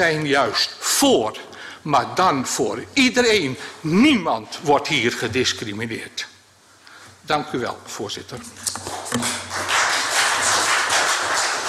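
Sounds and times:
speech: 0.0 - 6.3, 7.3 - 9.4
applause in council chamber: 8.6 - 11.6.

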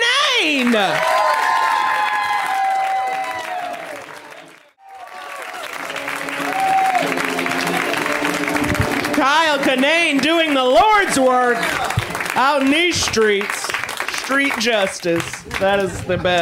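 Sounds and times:
audience whooping and cheering: 0.0 - 8.9
audience clapping: 0.0 - 16.4
speech: 0.4 - 1.1, 9.3 - 13.6, 14.3 - 16.4.

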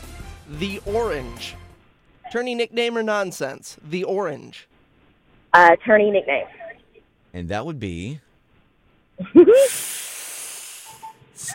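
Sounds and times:
speech: 0.5 - 1.6, 2.3 - 4.7, 5.5 - 6.6, 7.3 - 8.2, 9.2 - 10.1, 11.4 - 11.5
person drawing a long breath: 9.6 - 11.2.

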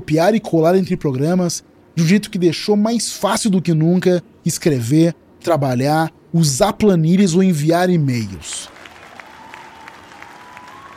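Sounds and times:
speech: 0.0 - 8.8
audience applauding presentation: 8.7 - 10.9.

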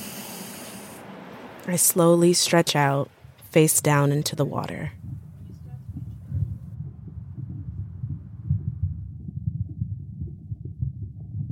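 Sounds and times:
speech: 1.6 - 5.0
human heartbeat: 4.6 - 11.5.

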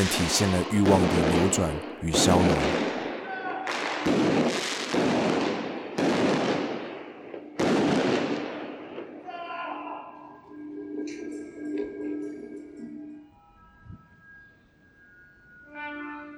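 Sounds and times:
speech: 0.0 - 2.8
fireworks exploding: 0.0 - 9.3.

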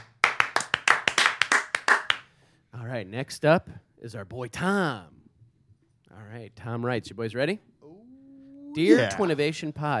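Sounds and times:
hands clapping: 0.0 - 2.3
speech: 2.9 - 5.2, 6.1 - 7.7, 8.8 - 9.9.

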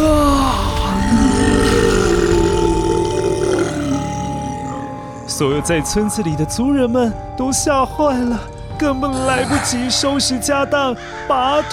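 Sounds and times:
huge roaring from a crack in the sky: 0.0 - 6.1
speech: 5.4 - 11.7.

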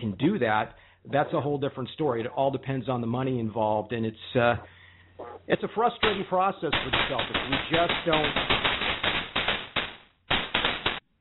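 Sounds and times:
speech: 0.1 - 8.8
fireworks going off: 6.0 - 11.0.

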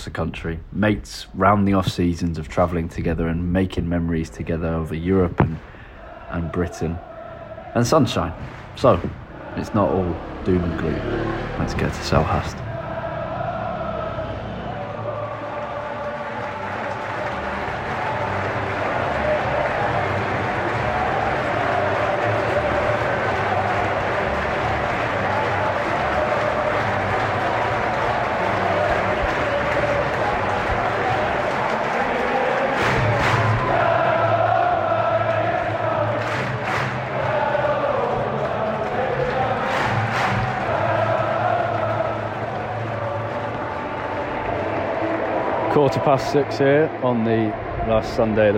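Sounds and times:
speech: 0.0 - 5.7, 6.3 - 7.1, 7.7 - 12.7, 46.1 - 48.5
Crystal Palace fans leaving Selhurst Park: 0.0 - 48.5.

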